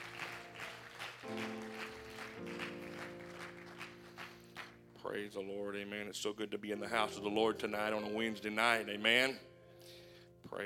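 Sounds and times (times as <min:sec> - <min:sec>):
audience hand clapping: 0:00.0 - 0:04.8
speech: 0:05.0 - 0:09.5.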